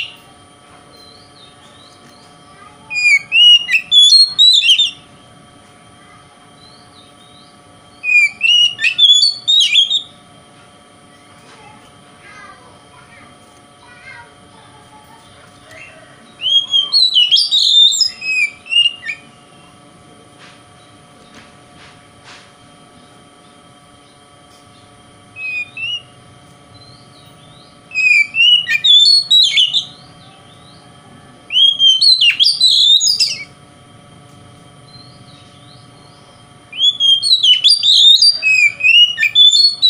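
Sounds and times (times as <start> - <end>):
Oriental magpie-robin singing: 0.0 - 0.2, 0.9 - 5.1, 6.6 - 10.2, 15.2 - 19.6, 24.0 - 33.6, 34.9 - 39.8
faint steady hum: 0.0 - 39.8.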